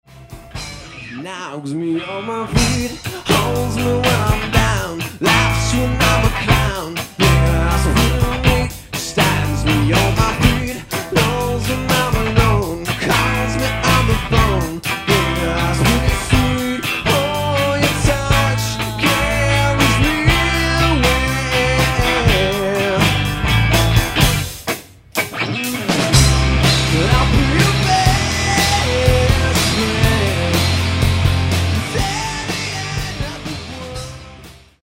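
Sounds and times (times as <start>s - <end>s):
pop song: 0.3s - 24.4s, 25.5s - 34.8s.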